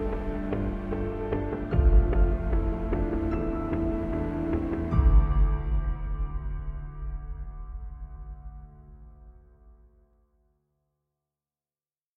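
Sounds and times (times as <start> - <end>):
emotional cinematic war music: 0.0 - 9.6.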